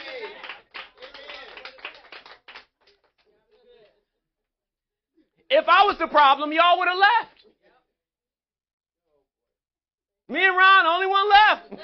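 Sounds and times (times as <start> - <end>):
group of women clapping: 0.0 - 4.0
speech: 5.5 - 7.3, 10.3 - 11.8.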